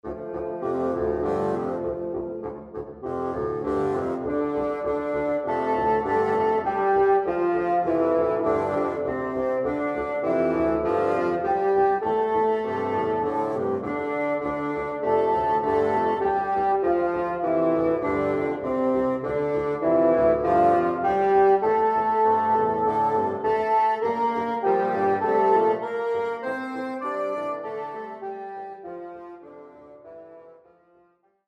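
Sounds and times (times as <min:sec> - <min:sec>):
boogie woogie style music: 0:00.0 - 0:30.0.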